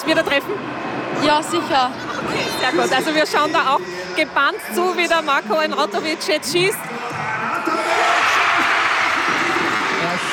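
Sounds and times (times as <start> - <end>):
speech: 0.0 - 7.0
large crowd cheering in a sports hall: 6.9 - 10.3
shouts and whoops from the crowd: 7.2 - 10.3.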